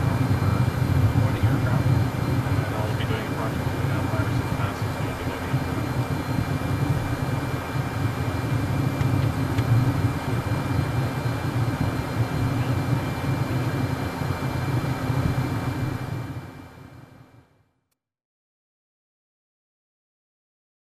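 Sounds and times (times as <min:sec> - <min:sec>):
aircraft crew in cockpit navigating: 0:00.0 - 0:17.5.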